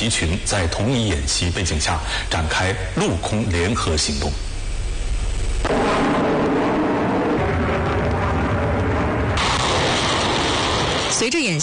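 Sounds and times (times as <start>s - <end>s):
speech: 0.0s - 4.5s, 11.2s - 11.6s
military drill artillery fire and explosions: 5.6s - 11.6s.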